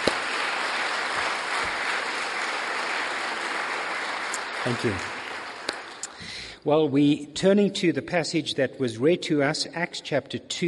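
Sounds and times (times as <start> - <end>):
church congregation applauding to welcome a couple: 0.0 - 6.4
speech: 4.6 - 5.1, 6.6 - 10.6.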